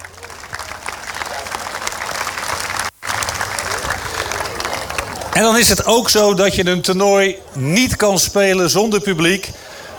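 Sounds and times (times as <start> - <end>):
audience applauding: 0.0 - 5.7
speech: 5.4 - 9.6.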